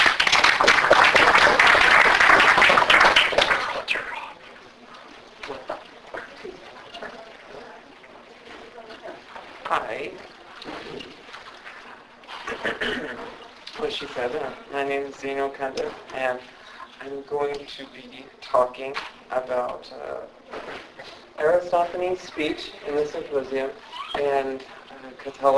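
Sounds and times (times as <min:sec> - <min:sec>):
audience applauding a speaker at an academic talk: 0:00.0 - 0:04.1
speech: 0:14.7 - 0:25.5.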